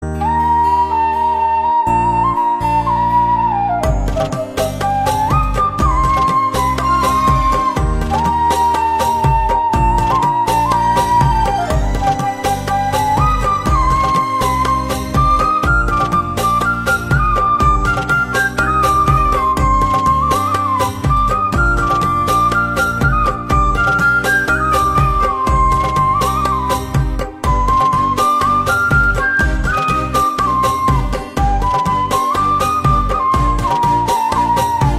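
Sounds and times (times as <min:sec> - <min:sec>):
flute: 0:00.0 - 0:34.9.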